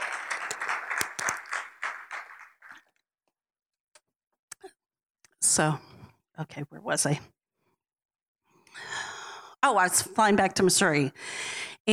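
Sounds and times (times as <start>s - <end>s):
crowd hand clapping: 0.0s - 2.9s
speech: 5.6s - 7.4s, 9.6s - 11.9s.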